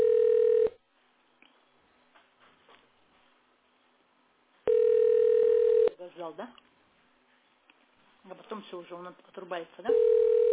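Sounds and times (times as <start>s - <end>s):
telephone ringback tone of an unanswered call: 0.0s - 0.8s, 4.7s - 6.0s, 9.9s - 10.5s
speech: 6.2s - 6.7s, 8.3s - 10.4s.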